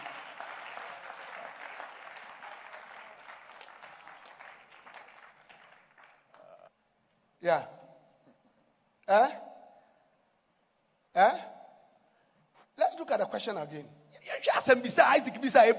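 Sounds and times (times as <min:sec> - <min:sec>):
crowd clapping: 0:00.0 - 0:06.7
speech: 0:07.4 - 0:07.8, 0:09.1 - 0:09.4, 0:11.2 - 0:11.4, 0:13.2 - 0:15.7.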